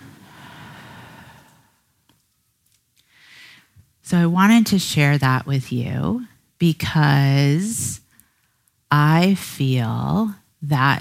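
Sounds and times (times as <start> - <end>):
deep breath in and out: 0.0 - 1.9, 3.1 - 3.8
speech: 4.1 - 8.0, 8.9 - 11.0.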